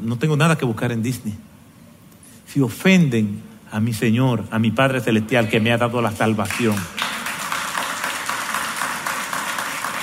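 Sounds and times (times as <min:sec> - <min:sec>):
speech: 0:00.0 - 0:01.5, 0:02.5 - 0:07.0
children clapping: 0:06.5 - 0:10.0.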